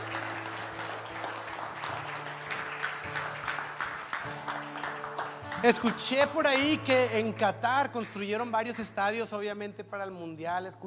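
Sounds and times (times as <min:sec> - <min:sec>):
audience applause: 0:00.0 - 0:06.8
speech: 0:05.6 - 0:10.8.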